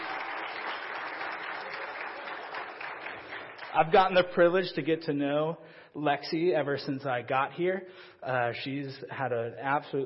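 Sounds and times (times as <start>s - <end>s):
church audience applauding to welcome a high-school student: 0.0s - 4.1s
speech: 3.7s - 10.0s.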